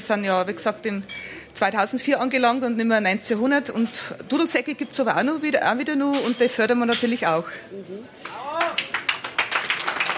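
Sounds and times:
speech: 0.0s - 8.4s
applause for a guest on a traditional music show: 8.2s - 10.1s.

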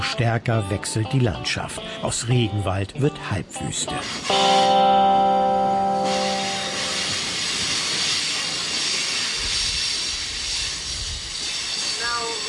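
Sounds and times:
speech: 0.2s - 5.4s
train brakes squealing: 5.9s - 12.4s.

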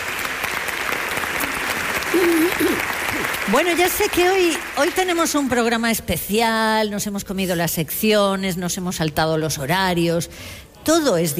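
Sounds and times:
theatre audience applause: 0.0s - 5.5s
speech: 2.2s - 11.3s.

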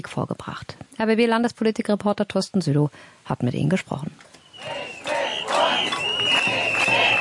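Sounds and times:
speech: 0.0s - 4.7s
protesting crowd of childcare workers and parents chanting outdoors: 4.6s - 7.1s.

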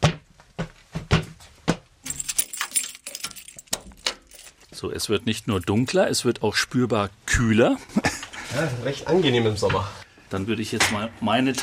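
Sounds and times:
heavy mine door being unlocked and opened: 2.1s - 4.6s
speech: 4.8s - 11.6s.

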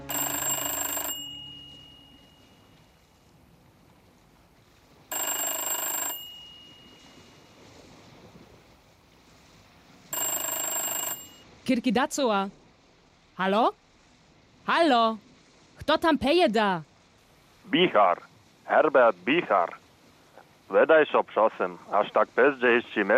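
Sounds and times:
mobile phone ringing inside a jacket pocket: 0.0s - 3.1s, 5.1s - 7.8s, 10.1s - 11.5s
speech: 11.7s - 12.6s, 13.4s - 13.8s, 14.7s - 15.3s, 15.9s - 16.9s, 17.7s - 19.8s, 20.7s - 23.1s.

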